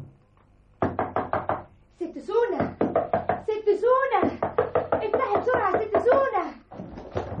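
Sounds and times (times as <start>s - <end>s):
loud rapid knocking on an apartment door: 0.8s - 1.7s, 2.5s - 7.3s.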